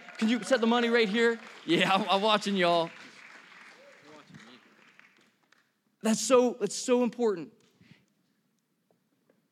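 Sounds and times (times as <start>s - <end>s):
audience applause: 0.0s - 5.4s
speech: 0.2s - 3.0s, 6.0s - 7.6s.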